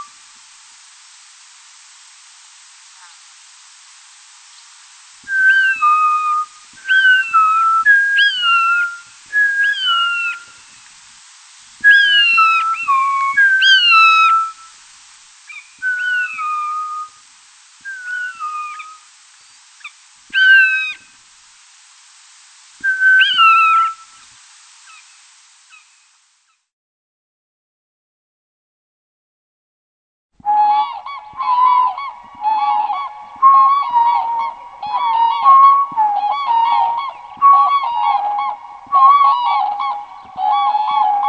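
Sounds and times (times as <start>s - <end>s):
bird studies: 4.5s - 10.8s, 11.9s - 14.7s, 15.5s - 17.1s, 17.9s - 21.1s, 22.9s - 24.1s, 30.7s - 41.2s.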